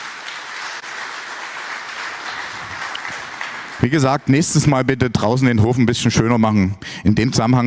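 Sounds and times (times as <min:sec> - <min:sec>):
audience applause: 0:00.0 - 0:04.3
speech: 0:03.8 - 0:07.6.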